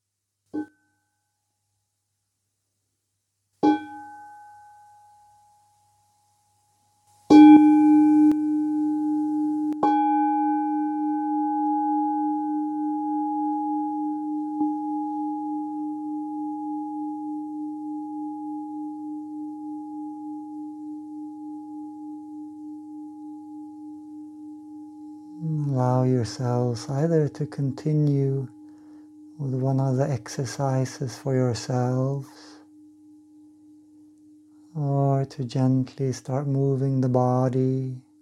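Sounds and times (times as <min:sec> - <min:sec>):
meditation bell ringing: 0:07.3 - 0:35.2
speech: 0:26.2 - 0:28.6, 0:29.4 - 0:32.4, 0:35.3 - 0:38.1.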